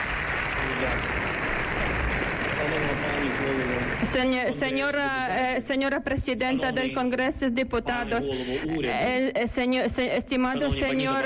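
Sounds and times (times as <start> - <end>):
applause in parliament chamber: 0.0 - 5.1
speech: 4.0 - 11.2.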